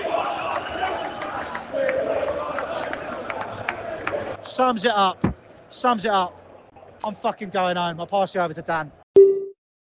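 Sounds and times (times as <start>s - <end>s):
football crowd booing: 0.0s - 4.4s
speech: 4.6s - 6.4s, 7.0s - 9.0s.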